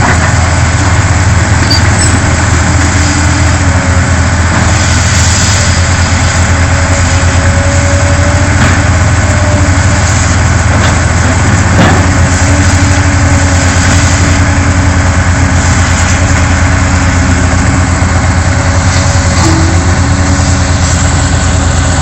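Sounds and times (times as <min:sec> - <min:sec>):
heavy engine idling during gas pipeline dismantling: 0:00.0 - 0:22.0
knock or clank: 0:01.6 - 0:02.4.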